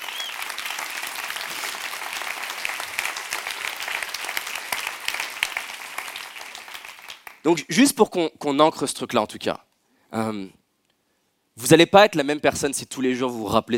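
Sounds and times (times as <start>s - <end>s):
audience applause: 0.0s - 7.4s
speech: 7.4s - 10.6s, 11.6s - 13.7s.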